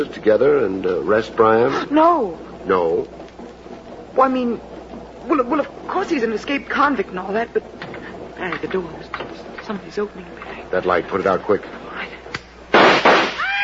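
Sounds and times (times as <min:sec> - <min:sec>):
speech: 0:00.0 - 0:03.2, 0:04.2 - 0:07.8, 0:08.4 - 0:11.8
gunshots fired in the dark: 0:12.7 - 0:13.5.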